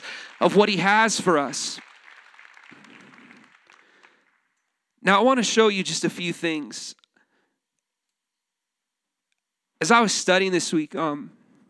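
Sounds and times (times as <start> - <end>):
audience applause: 0.0 - 4.8
speech: 0.4 - 1.9, 5.0 - 7.0, 9.8 - 11.4.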